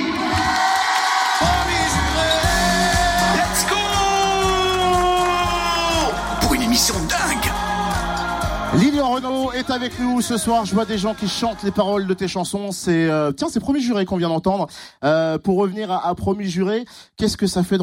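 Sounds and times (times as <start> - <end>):
studio audience clapping: 0.0 - 12.2
studio audience shrill whoops and yells: 0.4 - 6.4
speech: 9.2 - 17.8.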